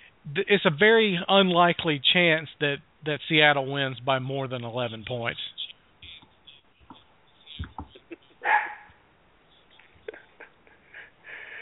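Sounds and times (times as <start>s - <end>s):
speech: 0.2s - 5.6s
dog barking and yelping: 8.4s - 9.0s.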